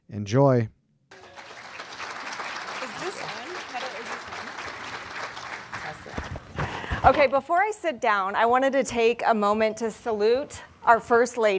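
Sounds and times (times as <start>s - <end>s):
speech: 0.1s - 0.8s, 7.0s - 11.5s
audience applause: 1.1s - 6.8s.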